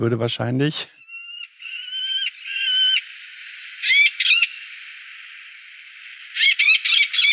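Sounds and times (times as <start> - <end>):
Eleonora's falcon calling: 1.0 - 5.3, 6.1 - 7.3
steady hiss: 2.4 - 7.3.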